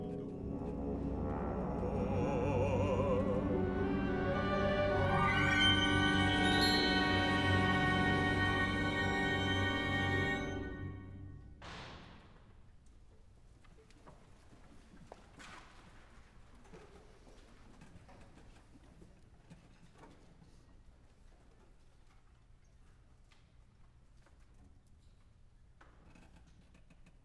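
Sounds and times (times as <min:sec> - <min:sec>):
orchestral music: 0:00.0 - 0:11.6.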